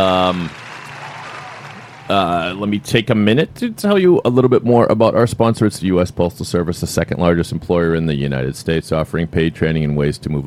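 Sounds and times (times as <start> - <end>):
speech: 0.0 - 0.6, 2.1 - 10.4
crowd applause: 0.0 - 2.8.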